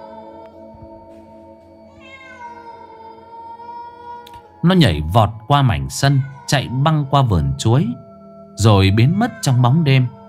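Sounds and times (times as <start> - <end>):
cat meowing: 1.9 - 4.5, 5.8 - 7.6, 8.6 - 10.2
speech: 4.6 - 8.0, 8.6 - 10.2.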